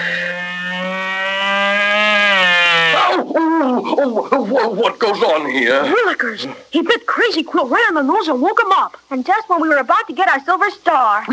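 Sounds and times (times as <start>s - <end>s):
mosquito buzzing: 0.0s - 3.1s
speech: 4.0s - 11.3s.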